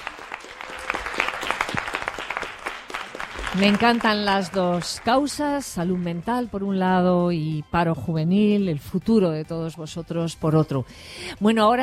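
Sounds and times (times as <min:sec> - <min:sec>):
audience applauding: 0:00.0 - 0:06.3
speech: 0:03.5 - 0:11.8.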